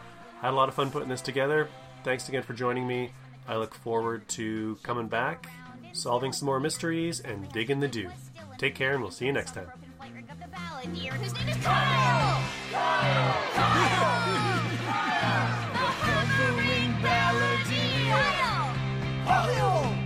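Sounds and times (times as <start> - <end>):
speech: 0.4 - 9.8, 10.8 - 14.2
crowd cheering: 11.4 - 20.0
whoops and shouts: 11.6 - 20.0.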